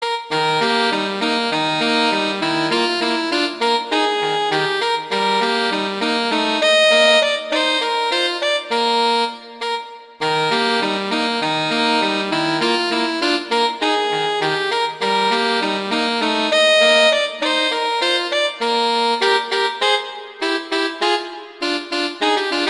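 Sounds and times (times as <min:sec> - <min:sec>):
horn duet: 0:00.0 - 0:22.6.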